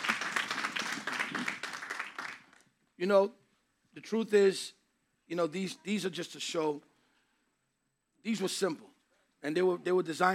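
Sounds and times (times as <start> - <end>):
audience clapping: 0.0 - 2.8
speech: 3.0 - 3.4, 4.0 - 6.9, 8.2 - 10.3.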